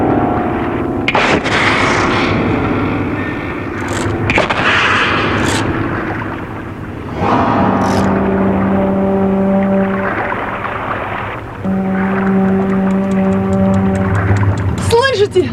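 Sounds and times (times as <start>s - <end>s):
low rumble of water and engine: 0.0s - 15.5s
boat siren sounding double signals: 2.1s - 15.5s.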